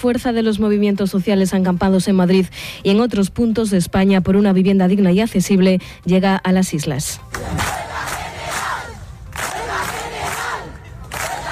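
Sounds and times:
speech: 0.0 - 7.9
crowd chanting at an open assembly in Las Palmas de Gran Canaria: 7.3 - 11.5.

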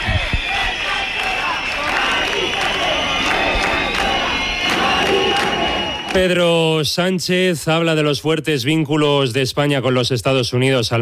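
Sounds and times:
sharp bursts and claps: 0.0 - 6.5
protesters and neighbours shouting and cheering at an eviction in Madrid: 0.0 - 6.9
speech: 6.1 - 11.0.

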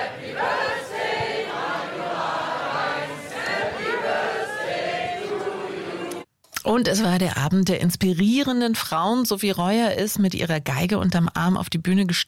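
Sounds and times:
audience singing birthday song: 0.0 - 6.3
speech: 6.7 - 12.2.

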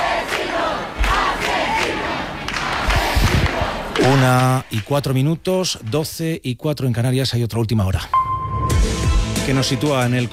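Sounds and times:
crowd chanting and yelling in rhythmic bursts: 0.0 - 4.8
speech: 4.0 - 8.2, 9.5 - 10.3.

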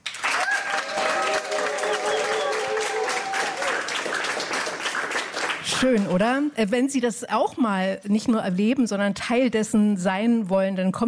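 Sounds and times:
studio audience applauding: 0.0 - 5.9
speech: 5.8 - 11.0.

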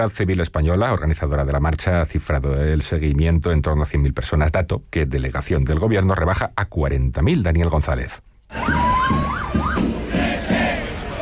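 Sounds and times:
speech: 0.0 - 9.2
protest march crowd in Madrid shouting: 8.5 - 11.1
wailing siren at a protest march in Madrid: 8.5 - 11.1.

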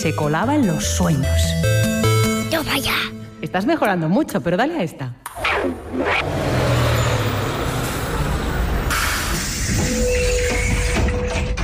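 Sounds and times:
speech: 0.0 - 1.9, 2.6 - 6.6
school bus engine arriving: 5.6 - 11.1.

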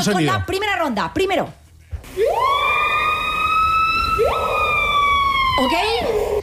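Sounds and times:
speech: 0.0 - 2.6, 5.6 - 6.4
siren-like bird call: 2.3 - 6.4.

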